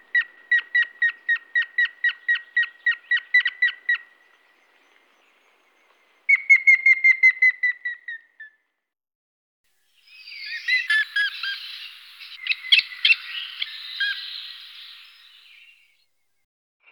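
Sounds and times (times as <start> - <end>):
grey-faced woodpecker whistled calls: 0.0 - 4.2, 6.3 - 8.6, 10.0 - 15.9.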